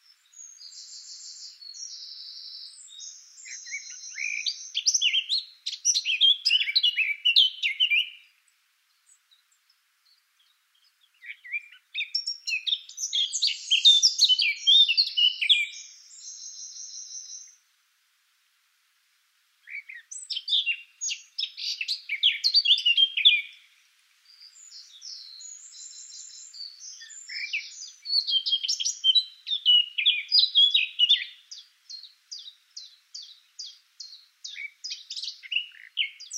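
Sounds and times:
Eurasian blackcap song: 0:00.0 - 0:17.7, 0:19.6 - 0:36.3.

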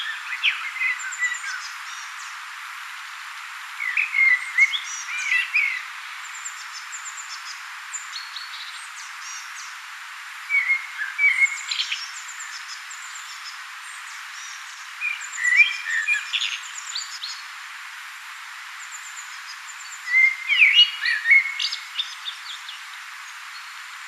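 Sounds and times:
Common blackbird singing: 0:00.0 - 0:02.2, 0:03.8 - 0:06.5, 0:10.5 - 0:13.5, 0:14.4 - 0:17.4, 0:19.2 - 0:22.8.

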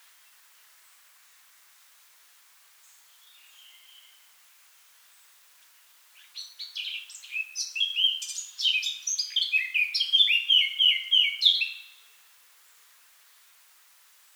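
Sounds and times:
Eurasian blackcap Sylvia atricapilla giving warbled phrases: 0:06.3 - 0:11.9.

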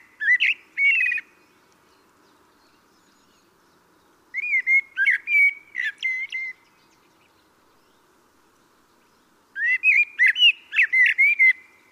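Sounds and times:
common blackbird Turdus merula singing: 0:00.0 - 0:08.1, 0:08.9 - 0:11.9.

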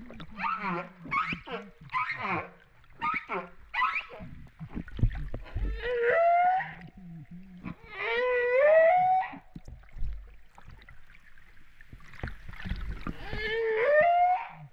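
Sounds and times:
humpback whale song: 0:00.0 - 0:14.7.

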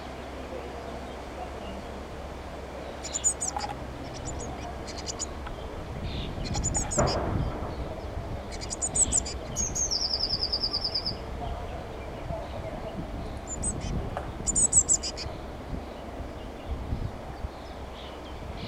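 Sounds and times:
low background rumble: 0:00.0 - 0:18.6
Eurasian blue tit calling: 0:02.8 - 0:16.8.

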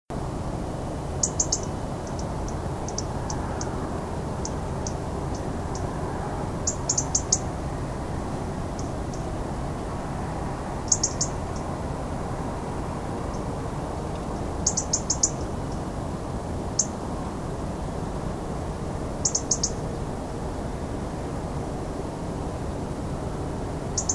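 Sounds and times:
low rumble: 0:00.1 - 0:24.1
European robin sharp ticking: 0:01.2 - 0:03.8, 0:04.4 - 0:06.0, 0:06.6 - 0:07.5, 0:08.7 - 0:09.3, 0:10.8 - 0:11.7, 0:14.6 - 0:15.8, 0:16.8 - 0:17.0, 0:19.2 - 0:19.8, 0:24.0 - 0:24.1.

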